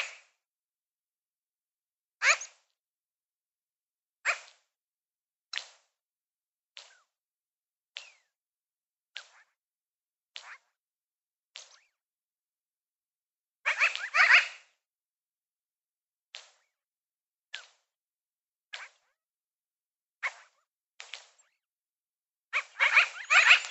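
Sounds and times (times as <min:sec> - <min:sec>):
magpie chirps: 0:02.2 - 0:02.6, 0:13.7 - 0:14.6, 0:20.2 - 0:20.6, 0:22.5 - 0:23.7.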